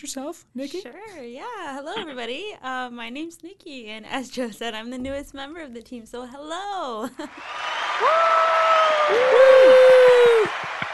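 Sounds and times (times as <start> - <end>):
speech: 0.0 - 9.7
audience clapping: 7.3 - 10.9
whoops and whistles: 7.4 - 10.9.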